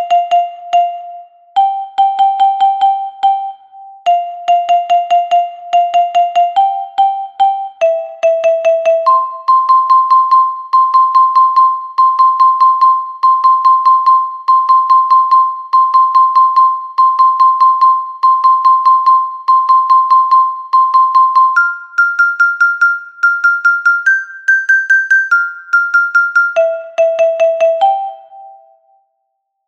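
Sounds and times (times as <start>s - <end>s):
soprano metallophone: 0.0s - 29.0s.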